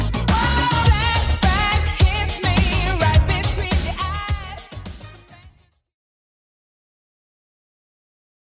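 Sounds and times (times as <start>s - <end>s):
80s style music at 105 bpm: 0.0s - 5.8s.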